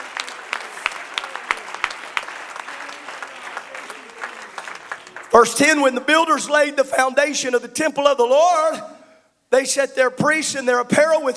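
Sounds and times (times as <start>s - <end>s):
audience clapping hands: 0.0s - 6.0s
speech: 5.3s - 8.9s, 9.5s - 11.3s.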